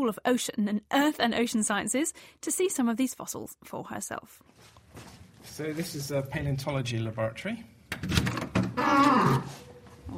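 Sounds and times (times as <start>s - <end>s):
speech: 0.0s - 10.1s
squeaky door: 8.2s - 9.7s.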